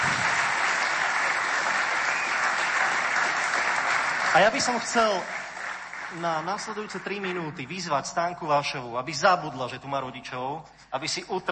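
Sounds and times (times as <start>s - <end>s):
audience applause: 0.0s - 7.4s
speech: 4.4s - 5.4s, 6.1s - 11.4s.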